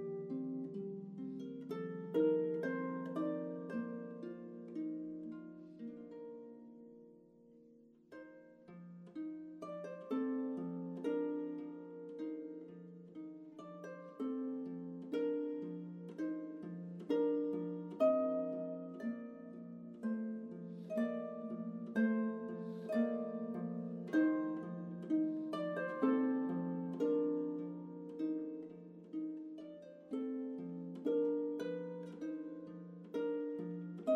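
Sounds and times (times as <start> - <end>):
harp: 0.0 - 34.1.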